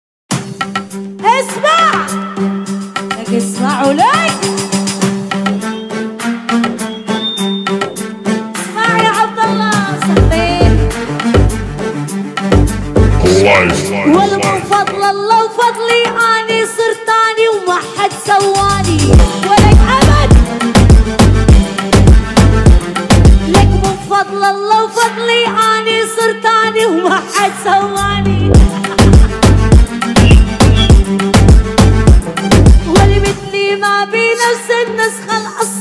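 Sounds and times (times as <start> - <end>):
Arabic remix music: 0.3 - 35.7.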